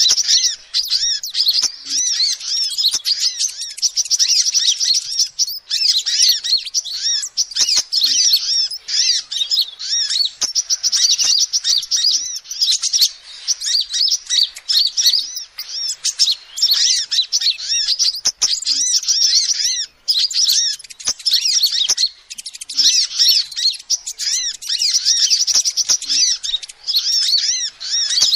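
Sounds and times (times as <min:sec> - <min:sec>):
lovebirds chirping: 0:00.0 - 0:28.3.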